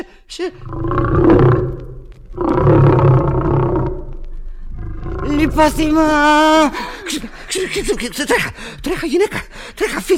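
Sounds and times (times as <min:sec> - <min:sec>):
speech: 0:00.3 - 0:01.8, 0:05.6 - 0:10.1
lion roaring: 0:00.6 - 0:07.1.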